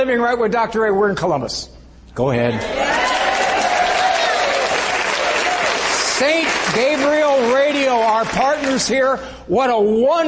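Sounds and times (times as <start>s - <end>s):
speech: 0.0s - 3.1s, 6.2s - 10.2s
studio audience applause: 2.6s - 9.0s.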